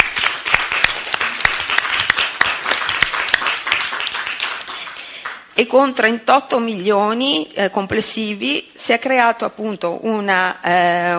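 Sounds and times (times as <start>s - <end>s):
audience applause: 0.0s - 5.4s
speech: 5.6s - 11.1s.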